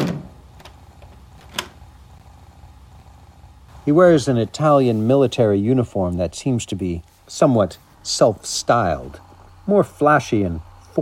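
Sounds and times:
door shutting: 0.0 - 0.8, 1.4 - 1.8
speech: 3.9 - 11.0.

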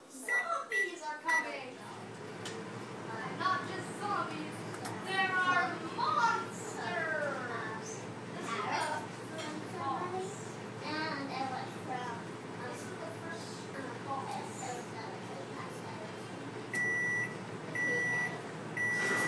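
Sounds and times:
GE 1200W microwave oven running: 0.0 - 19.2.

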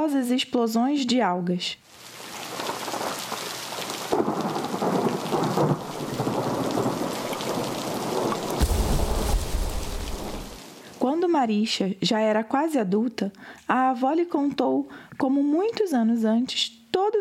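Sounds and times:
speech: 0.0 - 2.1, 11.0 - 17.1
heavy rain: 1.9 - 11.0
thunder rumbling: 4.1 - 10.6.

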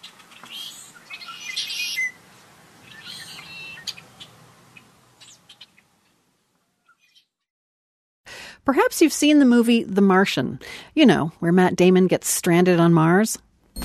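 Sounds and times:
birdsong with bright high chirps and trills: 0.0 - 6.2, 6.8 - 7.4
speech: 8.7 - 13.8.

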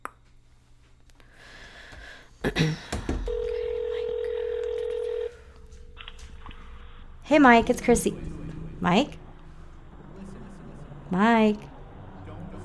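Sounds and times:
low hum: 0.0 - 12.6
speech: 2.4 - 2.9, 7.3 - 9.2, 11.1 - 11.7
steady telephone tone: 3.3 - 6.0.

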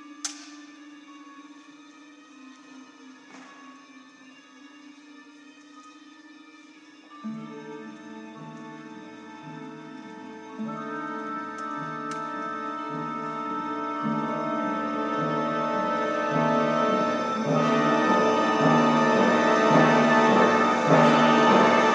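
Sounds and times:
orchestra tuning up: 7.5 - 21.9.

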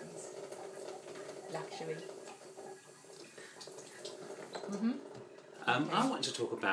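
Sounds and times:
tap water while washing cherries in a sink: 0.4 - 5.6
speech: 1.5 - 2.2, 4.7 - 6.7.

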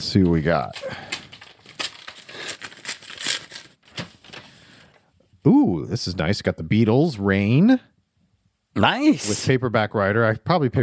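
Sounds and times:
speech: 0.0 - 1.1, 5.4 - 7.9, 8.8 - 10.8
crinkling wrapping and packaging as a package is torn open: 0.3 - 5.0.

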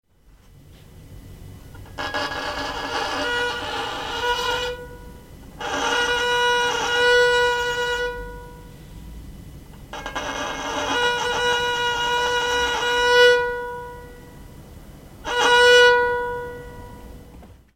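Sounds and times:
violin: 1.8 - 8.6, 9.9 - 14.2, 15.2 - 17.4.

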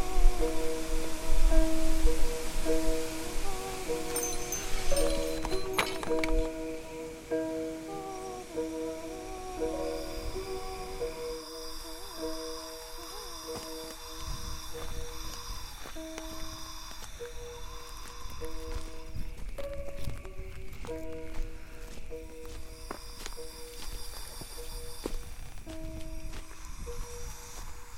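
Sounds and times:
ice rain: 0.0 - 19.0
wind: 0.0 - 27.9.

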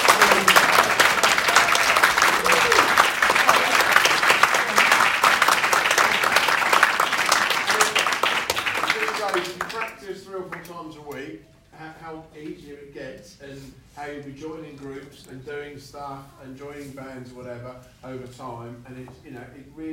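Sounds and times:
audience applause: 0.0 - 10.0
speech: 14.0 - 19.9.

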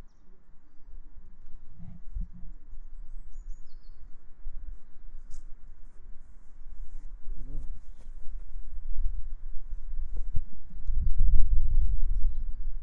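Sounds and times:
birdsong: 0.0 - 4.3, 7.4 - 9.2, 10.3 - 12.8.

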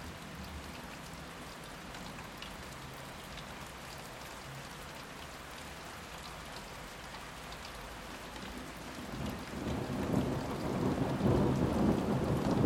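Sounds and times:
thunderstorm in May: 9.1 - 12.6.

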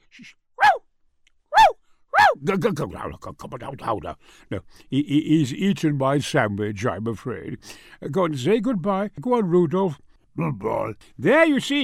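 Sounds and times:
speech: 0.2 - 0.4, 2.4 - 11.8
small dog barking: 0.6 - 0.8, 1.5 - 2.4.

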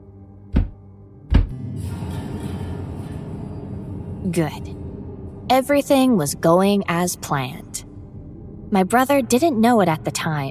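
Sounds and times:
knocking: 0.6 - 1.6
speech: 4.2 - 4.8, 5.5 - 7.8, 8.7 - 10.4.

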